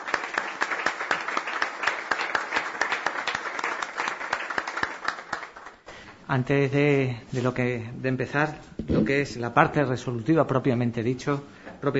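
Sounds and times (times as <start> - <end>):
group of people applauding: 0.0 - 5.9
speech: 6.3 - 11.9.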